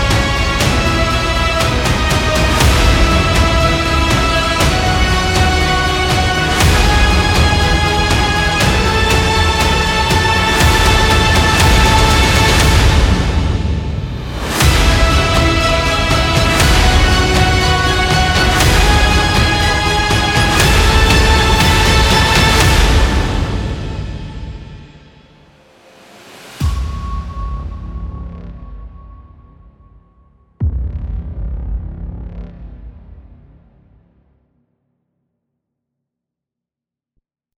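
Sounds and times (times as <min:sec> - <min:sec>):
heroic powerful epic music: 0:00.0 - 0:30.0.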